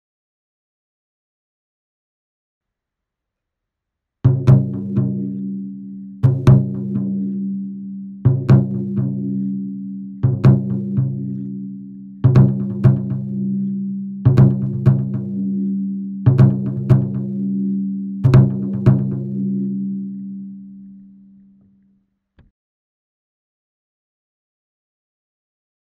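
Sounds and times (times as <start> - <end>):
taiko drums: 4.3 - 5.6, 6.2 - 7.3, 8.3 - 9.6, 10.2 - 13.6, 14.2 - 15.6, 16.3 - 17.6, 18.2 - 19.6.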